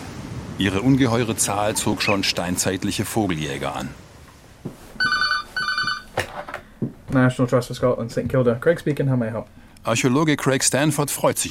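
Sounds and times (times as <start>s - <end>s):
speech: 0.6s - 4.0s, 7.1s - 11.5s
telephone ringing: 5.0s - 6.2s.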